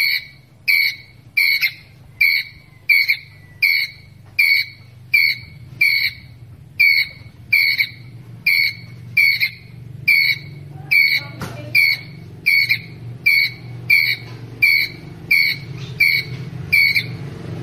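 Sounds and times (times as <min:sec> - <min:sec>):
ground squirrel chirping: 0:00.0 - 0:17.6.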